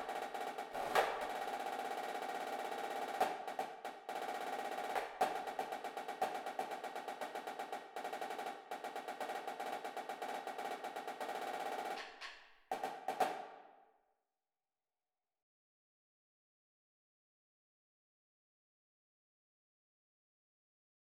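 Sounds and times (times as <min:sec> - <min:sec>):
drumline snare cadence: 0:00.0 - 0:13.6.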